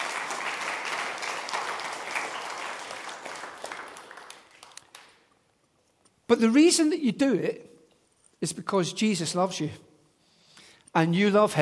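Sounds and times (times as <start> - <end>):
audience round of applause: 0.0 - 5.2
speech: 6.3 - 7.7, 8.4 - 9.9, 10.9 - 11.6.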